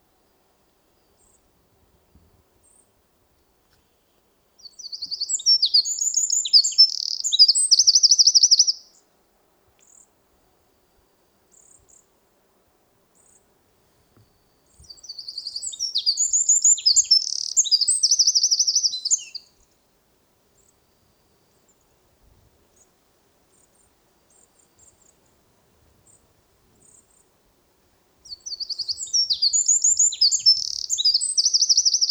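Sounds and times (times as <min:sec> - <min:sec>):
Eurasian wren singing: 0:04.6 - 0:08.8, 0:14.8 - 0:19.5, 0:28.2 - 0:32.1.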